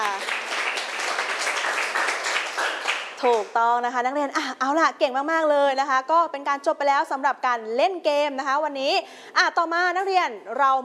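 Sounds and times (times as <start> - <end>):
classroom students clapping: 0.0 - 3.6
speech: 3.2 - 10.8.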